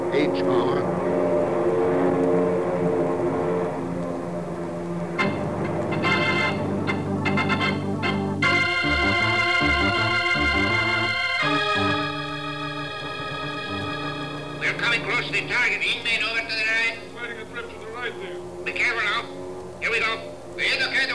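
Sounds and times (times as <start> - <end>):
airplanes approaching overhead: 0.0 - 21.1.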